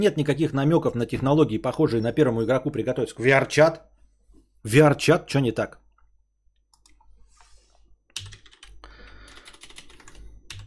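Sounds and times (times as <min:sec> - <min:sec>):
speech: 0:00.0 - 0:04.0, 0:04.6 - 0:05.8
computer keyboard typing a search query: 0:06.7 - 0:07.1, 0:08.1 - 0:10.6.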